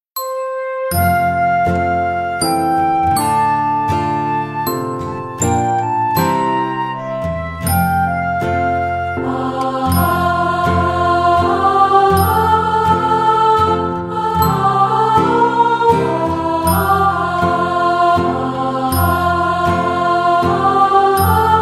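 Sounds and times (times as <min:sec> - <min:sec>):
choir singing a Christmas carol: 0:00.9 - 0:21.5.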